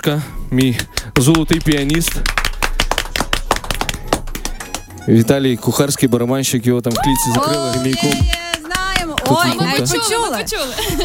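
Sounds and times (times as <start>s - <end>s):
speech: 0.0s - 2.4s, 5.0s - 8.4s, 9.3s - 11.0s
applause: 0.6s - 5.0s, 7.1s - 10.0s.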